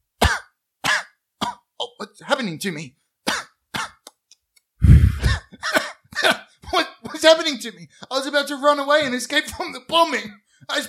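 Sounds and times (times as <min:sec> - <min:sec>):
person coughing: 0:00.2 - 0:01.6, 0:03.3 - 0:04.0, 0:04.8 - 0:06.5
speech: 0:02.1 - 0:03.0, 0:07.2 - 0:10.8.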